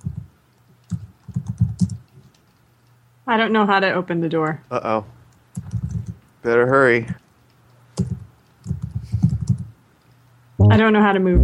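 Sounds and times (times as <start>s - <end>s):
typing on a computer keyboard: 0.0s - 3.0s, 5.3s - 6.2s, 7.1s - 9.7s
speech: 3.3s - 5.2s, 6.4s - 7.2s, 10.8s - 11.4s.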